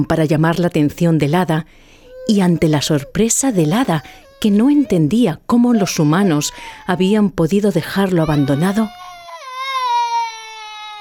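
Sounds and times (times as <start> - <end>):
speech: 0.0 - 9.0
human baby crying: 2.1 - 10.9.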